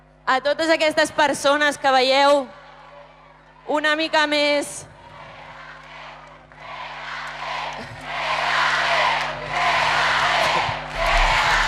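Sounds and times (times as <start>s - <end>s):
speech: 0.3s - 2.6s, 3.7s - 4.9s
crowd chanting for a football player: 8.2s - 11.6s.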